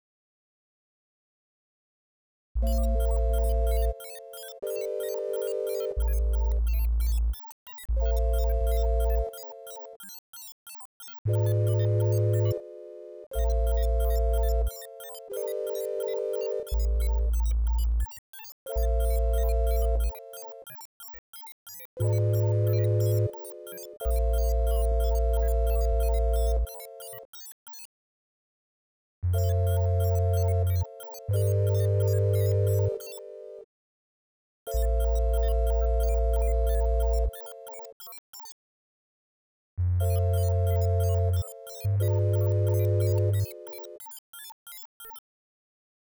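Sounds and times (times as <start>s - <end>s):
sine wave tone: 2.6s - 7.3s, 7.9s - 10.0s, 11.2s - 20.9s, 22.0s - 27.3s, 29.2s - 33.7s, 34.7s - 38.0s, 39.8s - 44.2s.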